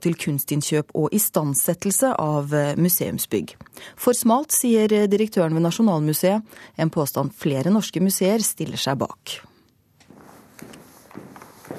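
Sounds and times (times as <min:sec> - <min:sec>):
speech: 0:00.0 - 0:09.5
quiet footsteps walking into the Munch hall of the National Museum in Oslo: 0:10.0 - 0:11.7.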